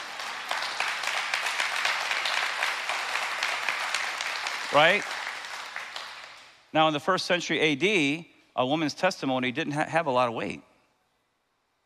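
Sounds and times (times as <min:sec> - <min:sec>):
audience clapping: 0:00.0 - 0:06.7
speech: 0:04.7 - 0:05.2, 0:06.7 - 0:10.7.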